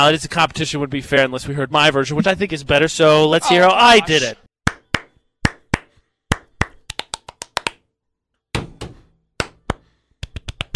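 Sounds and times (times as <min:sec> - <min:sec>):
speech: 0:00.0 - 0:04.4
sharp hand claps in a syncopated pattern: 0:04.7 - 0:07.8, 0:09.4 - 0:10.7.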